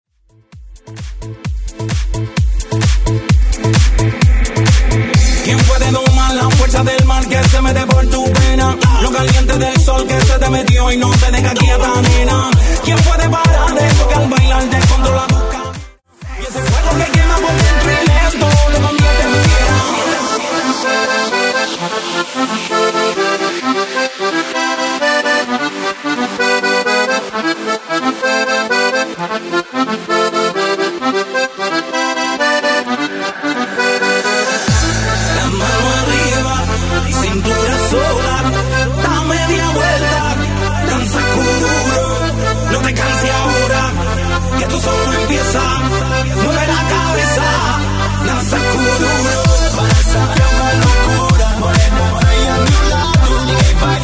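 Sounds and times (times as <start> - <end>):
130 bpm music track: 0.4 - 54.0.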